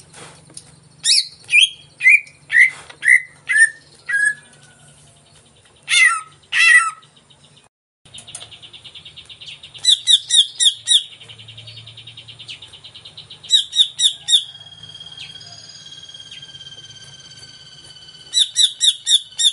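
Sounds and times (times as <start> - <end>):
caged greater green leafbird singing vigorously as a lure: 0.0 - 19.5.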